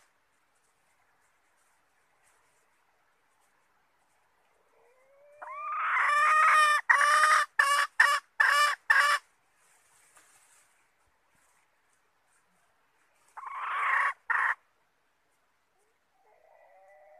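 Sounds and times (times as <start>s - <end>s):
red junglefowl hen cackling: 4.6s - 9.3s, 13.4s - 14.6s, 15.8s - 17.1s.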